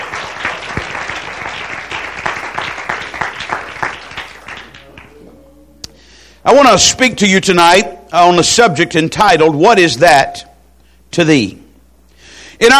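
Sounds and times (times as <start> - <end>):
audience clapping hands: 0.0 - 5.2
speech: 6.5 - 10.5, 11.2 - 11.6, 12.6 - 12.7.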